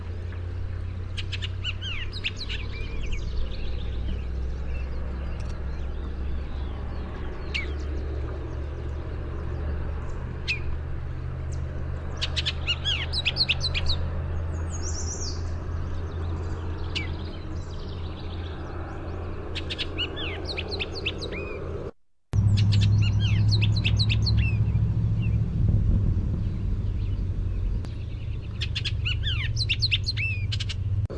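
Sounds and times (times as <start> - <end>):
persistent low background rumble: 0.0 - 31.1
Bullock's Oriole whistled and chattering song: 1.1 - 7.9, 10.4 - 10.7, 12.2 - 14.0, 16.8 - 17.4, 19.6 - 21.6, 22.5 - 25.4, 26.4 - 30.9.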